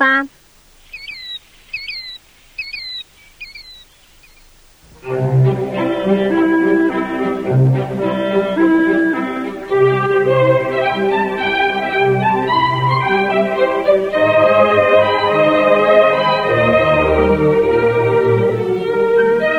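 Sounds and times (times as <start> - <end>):
killdeer calls: 0.0 - 17.0
loud rich instrumental music: 4.8 - 19.5.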